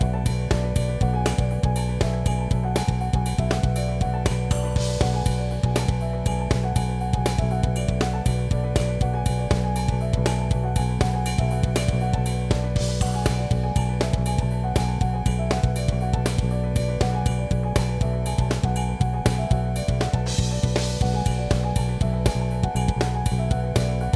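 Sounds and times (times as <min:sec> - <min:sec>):
rhythm backing track for practice: 0:00.0 - 0:24.1.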